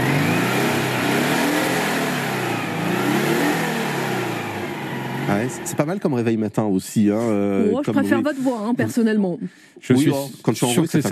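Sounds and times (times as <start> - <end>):
Citroën 2CV car engine revving: 0.0 - 6.1
speech: 5.4 - 11.0.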